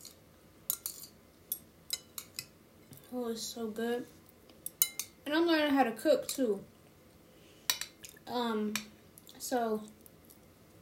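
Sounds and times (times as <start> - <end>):
cutlery clinking against a plate during dinner: 0.0 - 2.5, 4.7 - 5.2
speech: 3.1 - 4.2, 5.3 - 6.7, 8.3 - 10.0.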